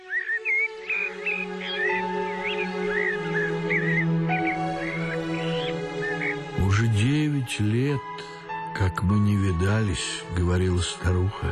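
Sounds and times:
rooks cawing harshly: 0.0s - 6.6s
starlings singing warbling whistled phrases: 0.0s - 11.5s
speech: 7.5s - 8.1s, 8.8s - 11.5s.

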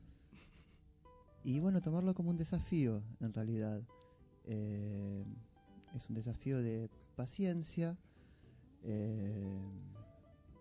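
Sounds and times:
speech: 1.4s - 8.1s, 8.8s - 10.2s
deep heavy breath with a snore-like rasp: 8.0s - 9.9s.

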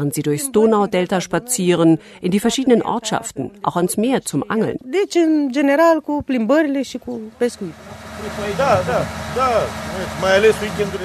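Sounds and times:
speech: 0.0s - 11.0s
motorboat engine drone: 7.3s - 11.0s.

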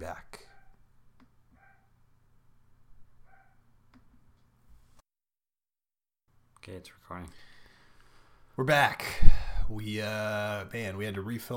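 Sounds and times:
dog barking: 0.5s - 0.8s, 1.6s - 1.9s, 3.2s - 3.6s
speech: 6.6s - 7.5s, 8.6s - 11.5s.

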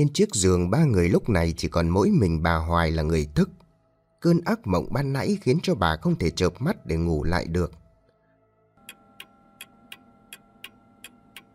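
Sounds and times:
speech: 0.0s - 3.6s, 4.2s - 7.8s
old clock ticking: 8.9s - 11.5s.

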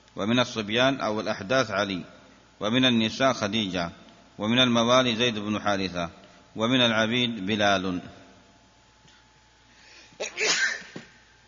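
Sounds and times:
speech: 0.2s - 8.2s
sneeze: 10.2s - 11.1s.

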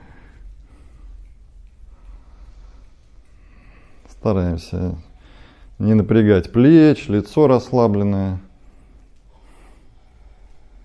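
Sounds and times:
ujjayi breathing in a yoga kriya class: 0.0s - 4.2s, 5.1s - 5.8s, 8.5s - 10.8s
speech: 4.2s - 5.1s, 5.8s - 8.5s.

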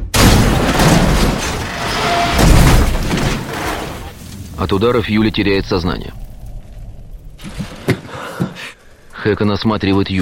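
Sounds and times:
car ramming and rolling over: 0.2s - 4.2s
speech: 4.7s - 6.2s, 9.2s - 10.2s.

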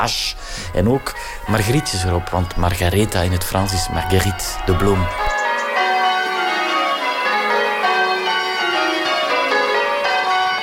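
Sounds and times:
speech: 0.0s - 5.3s
church bells ringing: 0.0s - 10.6s.

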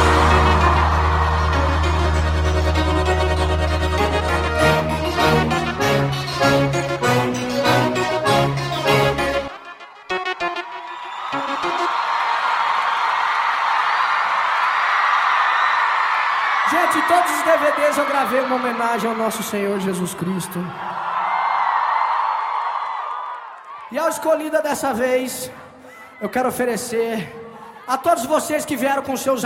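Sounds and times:
live music at a concert: 0.0s - 12.8s
concert audience shouting and cheering: 0.0s - 25.0s
speech: 18.4s - 20.9s, 24.0s - 29.4s.

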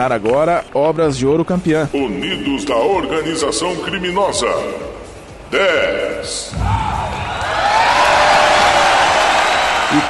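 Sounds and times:
speech: 0.0s - 6.9s
audience cheering and celebrating: 6.5s - 10.0s.

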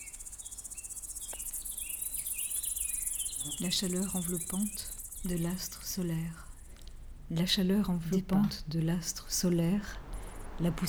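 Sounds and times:
crickets chirping: 0.0s - 10.8s
speech: 3.4s - 6.5s, 7.3s - 10.0s, 10.6s - 10.8s.

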